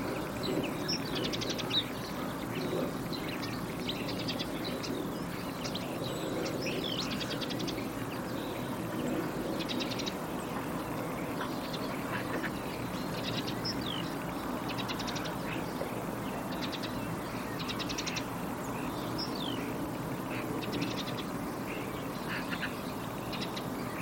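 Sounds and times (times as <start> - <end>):
birds giving buzzy trills: 0.0 - 24.0.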